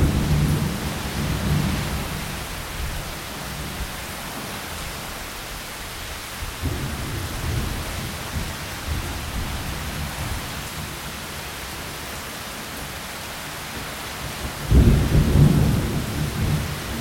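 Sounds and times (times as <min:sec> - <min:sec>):
thunderstorm: 0:00.0 - 0:05.1, 0:06.4 - 0:11.2, 0:14.2 - 0:16.9.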